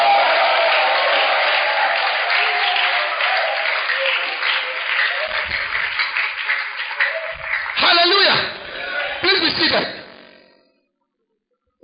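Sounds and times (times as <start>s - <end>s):
people shouting and cheering: 0.0s - 9.6s
crowd clapping: 0.0s - 10.0s.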